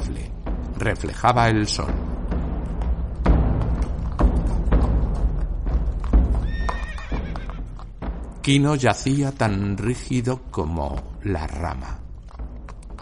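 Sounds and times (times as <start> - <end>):
horse hooves clip-clopping: 0.0 - 13.0
speech: 0.1 - 2.1, 8.5 - 12.0
horse whinnying: 6.4 - 7.9.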